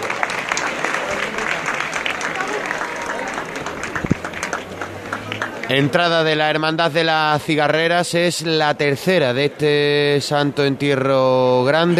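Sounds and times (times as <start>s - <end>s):
crowd applause in a plaza: 0.0s - 6.8s
speech: 5.7s - 11.9s.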